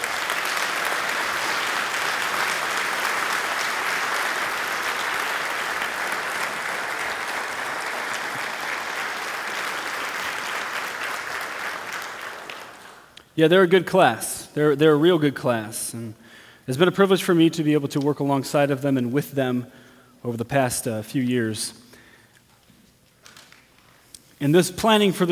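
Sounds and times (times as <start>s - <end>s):
audience applause for graduates: 0.0s - 13.1s
speech: 13.4s - 21.8s, 24.4s - 25.3s.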